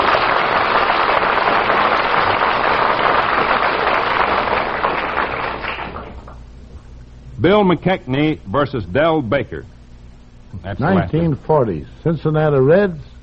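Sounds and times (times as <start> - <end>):
audience applause: 0.0 - 6.4
speech: 7.4 - 9.7, 10.5 - 13.1.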